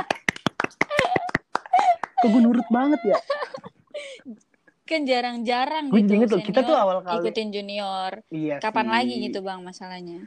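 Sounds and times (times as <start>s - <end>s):
hand clapping: 0.0s - 2.6s
laughter: 0.9s - 3.7s
speech: 2.2s - 3.3s, 4.2s - 10.2s.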